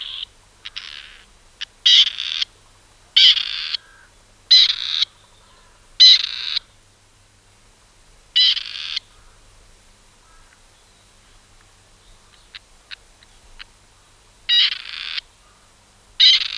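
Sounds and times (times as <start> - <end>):
Grey Partridge calling: 0.0 - 2.5, 3.2 - 6.7, 8.4 - 9.3, 14.5 - 15.6, 16.2 - 16.5.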